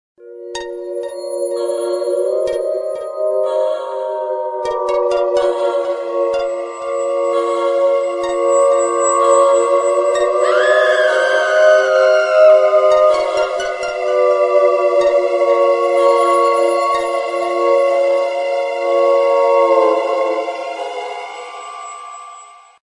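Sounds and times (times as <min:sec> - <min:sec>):
suspense music: 0:00.2 - 0:22.8.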